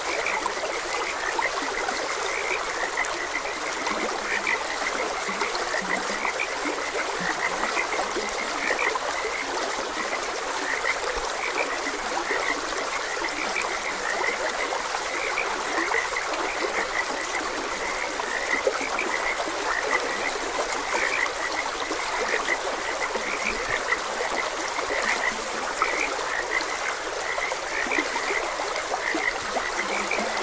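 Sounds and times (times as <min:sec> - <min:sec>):
frog calls: 0:00.0 - 0:30.4
trickling stream water: 0:00.0 - 0:30.4.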